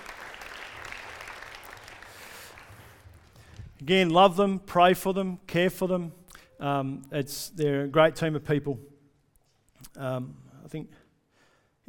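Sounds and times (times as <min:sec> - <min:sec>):
audience applause: 0:00.0 - 0:03.8
speech: 0:03.8 - 0:08.9, 0:09.9 - 0:11.0.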